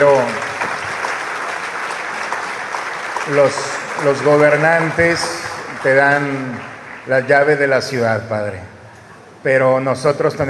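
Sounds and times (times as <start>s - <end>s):
audience applause: 0.0s - 8.1s
speech: 3.3s - 8.8s, 9.4s - 10.4s.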